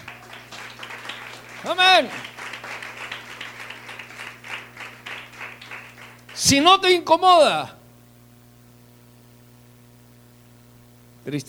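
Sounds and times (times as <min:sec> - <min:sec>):
audience applause: 0:00.0 - 0:06.7
speech: 0:01.6 - 0:02.3, 0:06.4 - 0:07.8, 0:11.3 - 0:11.4.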